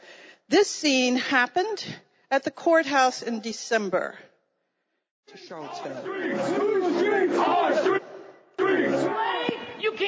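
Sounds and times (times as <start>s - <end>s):
speech: 0.5s - 4.3s, 5.3s - 8.1s
protest crowd shouting: 5.4s - 9.8s.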